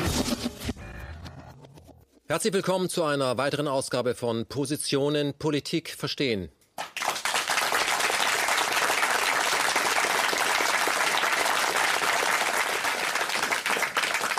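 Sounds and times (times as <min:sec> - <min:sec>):
speech: 0:02.3 - 0:06.6
audience applause: 0:06.8 - 0:14.3.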